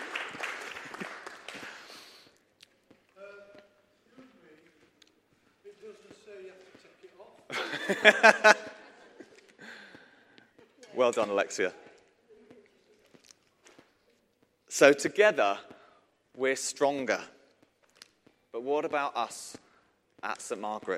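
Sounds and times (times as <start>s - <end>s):
round of applause: 0.0s - 2.3s
laughter: 7.5s - 10.0s
speech: 7.9s - 8.6s, 11.1s - 11.9s, 14.8s - 15.7s, 16.4s - 17.4s, 18.6s - 19.6s, 20.2s - 20.9s.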